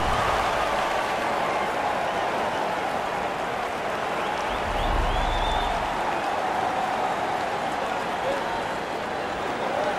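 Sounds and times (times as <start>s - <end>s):
neutral crowd of spectators: 0.0s - 9.9s.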